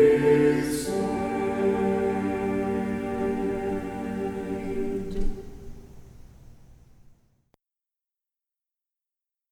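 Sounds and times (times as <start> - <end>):
choir chanting a Byzantine hymn in tone two: 0.0 - 5.9.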